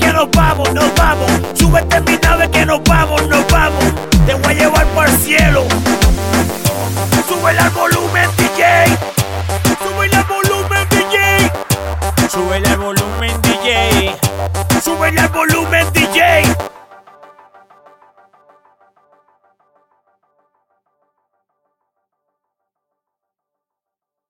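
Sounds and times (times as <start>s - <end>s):
full drum kit loop at 95 BPM: 0.0s - 16.7s.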